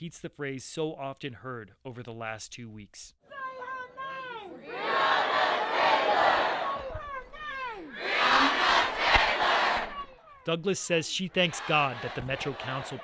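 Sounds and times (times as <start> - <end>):
speech: 0.0 - 3.2, 10.4 - 13.0
crowd cheering: 3.3 - 10.3, 11.1 - 13.0.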